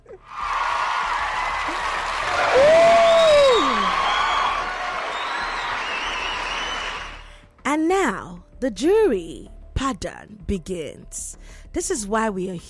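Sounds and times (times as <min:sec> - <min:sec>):
audience applause: 0:00.2 - 0:07.3
speech: 0:08.6 - 0:12.6.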